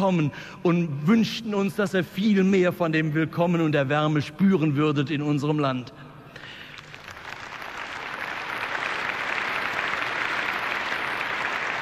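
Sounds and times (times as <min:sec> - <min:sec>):
speech: 0:00.0 - 0:06.0
crowd clapping: 0:06.4 - 0:11.8.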